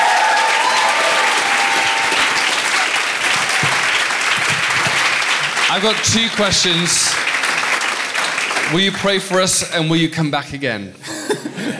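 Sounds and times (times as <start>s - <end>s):
audience applause and cheering: 0.0s - 9.1s
speech: 5.7s - 7.3s, 8.7s - 11.7s.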